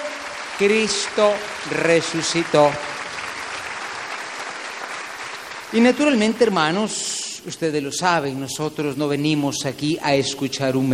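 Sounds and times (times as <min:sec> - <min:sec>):
audience applause: 0:00.0 - 0:06.8
speech: 0:00.6 - 0:03.0, 0:05.7 - 0:10.9.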